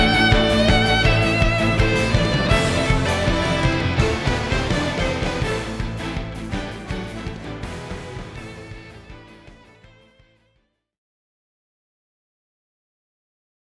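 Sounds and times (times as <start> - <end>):
battle music: 0.0 - 10.0.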